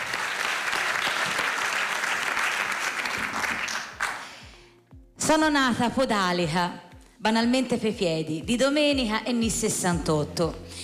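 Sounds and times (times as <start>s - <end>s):
applause: 0.0s - 4.5s
speech: 5.3s - 10.8s.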